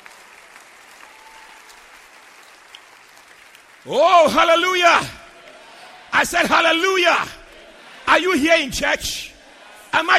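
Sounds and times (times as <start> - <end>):
church audience clapping hands: 0.0 - 7.7
speech: 3.8 - 5.2, 6.2 - 7.4, 8.1 - 9.3, 10.0 - 10.1.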